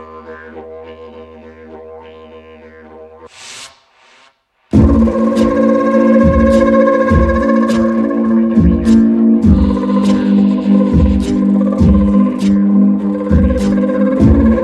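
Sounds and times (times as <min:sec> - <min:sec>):
live didgeridoo playing: 0:00.0 - 0:03.3, 0:04.8 - 0:14.6
morning ambience: 0:04.8 - 0:14.6.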